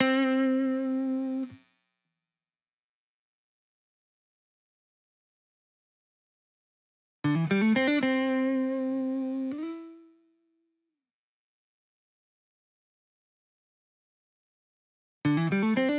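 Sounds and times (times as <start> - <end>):
70s style guitars in A minor at 120 BPM: 0.0 - 1.6, 7.2 - 10.0, 15.3 - 15.9.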